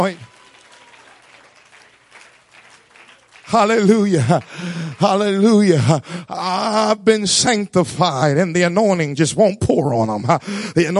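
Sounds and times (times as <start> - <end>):
speech: 0.0 - 0.3, 3.5 - 10.9
audience clapping: 0.0 - 6.2.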